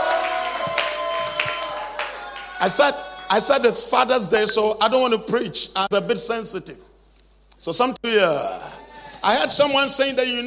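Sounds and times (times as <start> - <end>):
crowd clapping: 0.0 - 3.4
speech: 2.6 - 6.9, 7.6 - 10.4.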